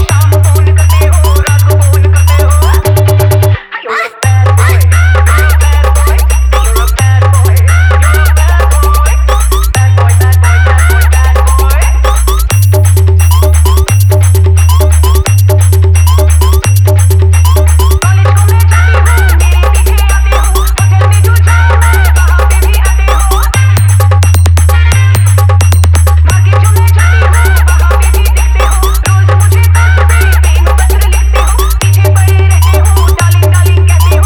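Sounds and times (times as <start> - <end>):
humming electronic dance music mix: 0.0 - 3.6, 4.2 - 34.2.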